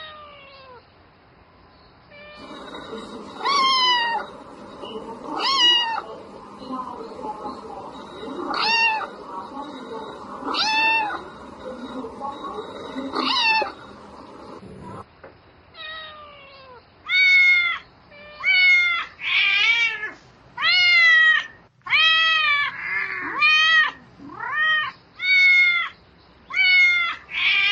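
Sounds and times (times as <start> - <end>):
cat meowing calling its mate: 0.0 - 0.8, 2.1 - 4.4, 5.3 - 6.0, 8.1 - 9.1, 10.1 - 11.4, 12.3 - 15.0, 15.8 - 27.7.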